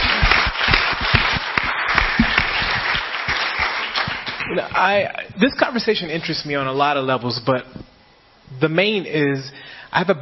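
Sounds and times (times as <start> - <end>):
round of applause: 0.0 - 4.6
speech: 4.8 - 7.9, 8.6 - 10.2.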